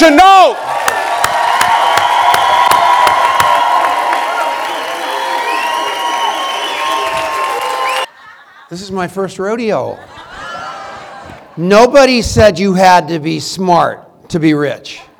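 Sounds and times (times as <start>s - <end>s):
audience whoops and cheering: 0.0s - 8.1s
standing audience applauding a speaker's welcome at an event: 0.5s - 8.1s
laughter: 7.0s - 9.1s, 9.8s - 11.7s
speech: 8.7s - 10.1s, 11.6s - 15.1s.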